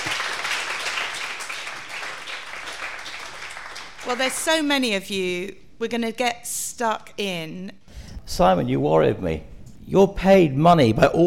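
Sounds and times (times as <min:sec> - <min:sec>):
audience round of applause: 0:00.0 - 0:04.6
speech: 0:04.0 - 0:11.2.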